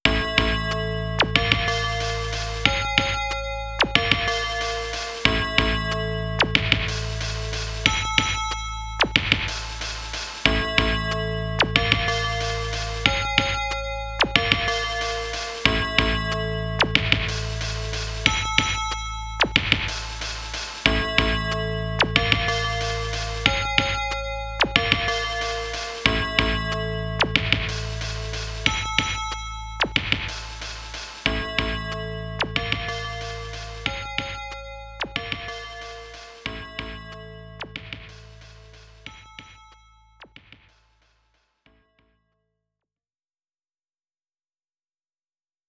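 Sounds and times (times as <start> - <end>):
FM synth loop: 0.0 - 40.7.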